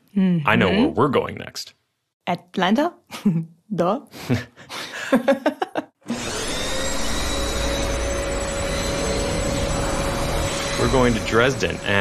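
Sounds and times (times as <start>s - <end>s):
speech: 0.2s - 5.9s, 10.8s - 11.9s
laughter: 0.5s - 1.4s, 4.2s - 5.8s
vacuum cleaner running: 6.1s - 11.9s.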